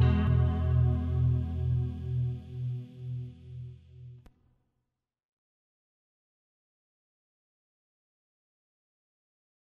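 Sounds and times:
dream house music: 0:00.0 - 0:03.9.

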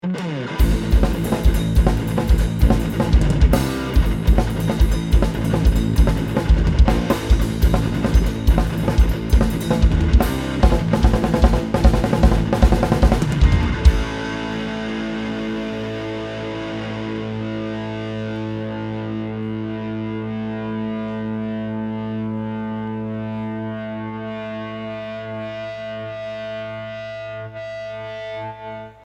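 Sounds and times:
banda music intro: 0:00.6 - 0:15.5.

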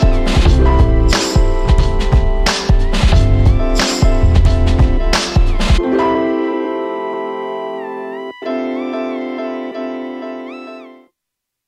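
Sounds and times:
1990s boom bap hip hop beat: 0:00.0 - 0:07.3.

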